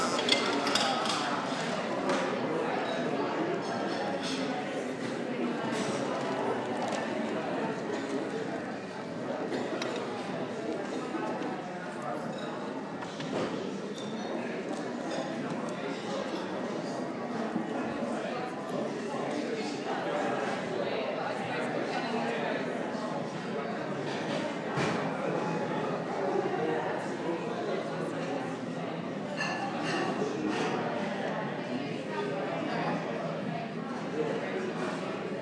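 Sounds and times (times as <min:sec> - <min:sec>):
Blue Moon restaurant ambience in Sheffield: 0:00.0 - 0:35.3.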